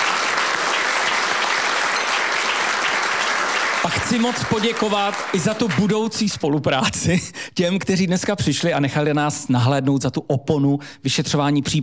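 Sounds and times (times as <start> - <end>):
audience applause: 0.0 - 6.2
speech: 3.8 - 11.8.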